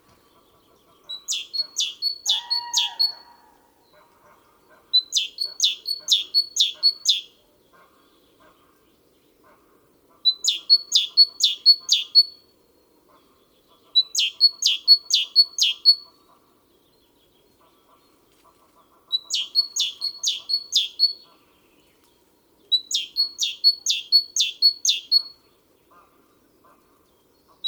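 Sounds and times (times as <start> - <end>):
great tit singing: 0.2 - 3.2, 4.4 - 7.3, 13.5 - 16.2, 19.1 - 21.7, 22.7 - 25.6, 26.6 - 27.6.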